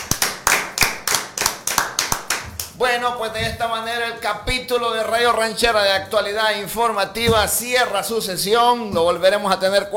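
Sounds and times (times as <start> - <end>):
group of young men clapping: 0.0 - 2.8
speech: 2.8 - 9.9.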